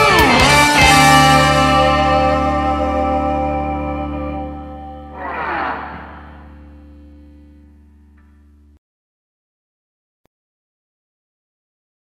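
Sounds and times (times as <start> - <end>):
blues guitar: 0.0 - 8.6.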